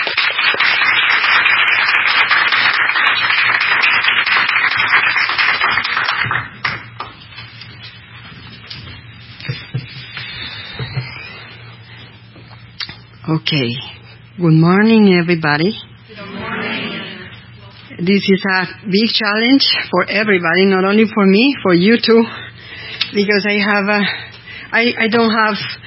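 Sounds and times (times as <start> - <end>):
audience applause welcoming a speaker at a morning event: 0.0 - 7.1
speech: 13.4 - 15.9, 18.0 - 22.4, 23.1 - 25.8.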